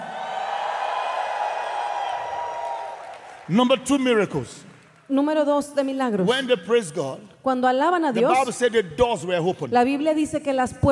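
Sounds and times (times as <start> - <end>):
audience shouting and cheering praise: 0.0 - 3.6
speech: 3.5 - 10.8.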